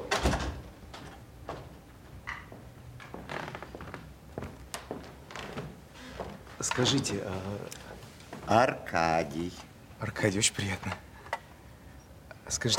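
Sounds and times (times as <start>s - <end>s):
door being shut by a butler: 0.0s - 0.7s
speech: 6.6s - 7.8s, 8.5s - 11.1s, 12.5s - 12.7s.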